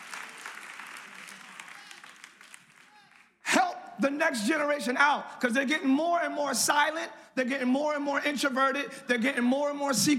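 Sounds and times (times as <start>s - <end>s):
audience clapping: 0.0s - 3.5s
speech: 4.0s - 10.1s.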